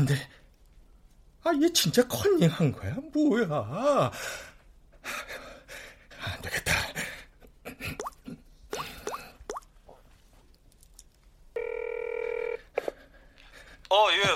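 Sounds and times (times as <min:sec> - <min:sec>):
speech: 0:00.0 - 0:00.4, 0:01.4 - 0:05.4, 0:13.9 - 0:14.3
small plopping sounds: 0:07.9 - 0:09.8
unanswered phone call ring tone: 0:11.6 - 0:12.7.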